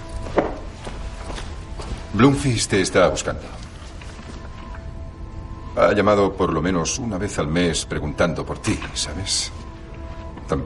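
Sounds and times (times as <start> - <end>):
footsteps walking to a door: 0.0 - 4.8
speech: 2.2 - 3.7, 5.8 - 9.6, 10.5 - 10.6.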